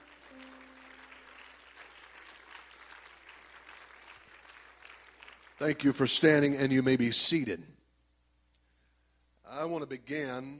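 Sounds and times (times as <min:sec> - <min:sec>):
audience clapping hands: 0:00.0 - 0:06.5
speech: 0:05.6 - 0:07.8, 0:09.9 - 0:10.5.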